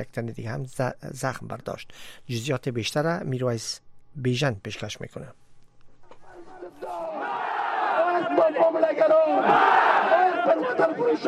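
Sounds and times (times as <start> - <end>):
speech: 0.0 - 5.4, 8.4 - 11.2
people shouting: 6.7 - 11.2
protesters chanting anti-government slogans: 6.7 - 11.2.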